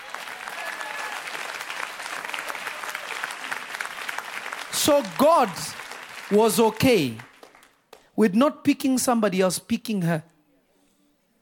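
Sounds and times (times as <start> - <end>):
audience clapping: 0.0 - 8.2
speech: 4.7 - 7.3, 8.2 - 10.3.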